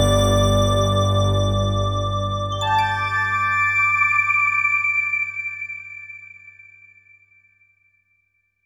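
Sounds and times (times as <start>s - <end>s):
astro synth lead: 0.0s - 6.1s.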